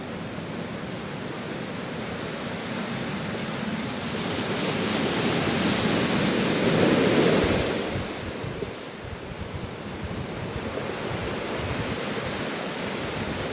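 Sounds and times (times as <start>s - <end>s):
ocean waves: 0.0s - 13.5s.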